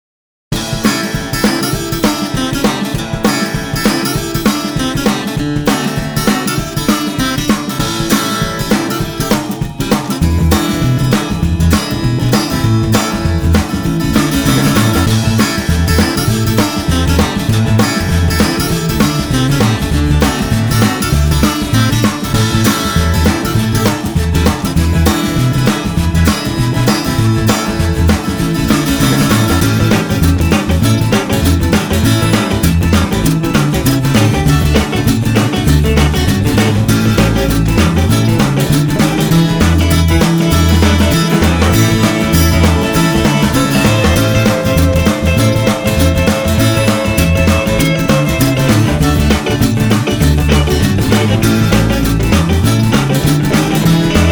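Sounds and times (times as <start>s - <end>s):
zydeco celebration music: 0.6s - 54.3s.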